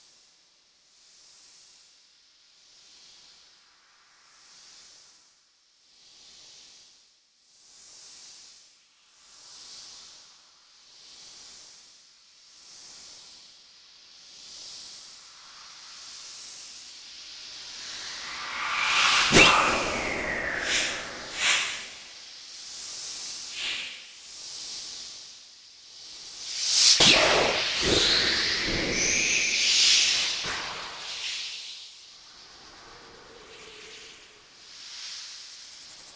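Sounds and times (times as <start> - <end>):
white noise: 17.6 - 22.0, 26.4 - 31.4.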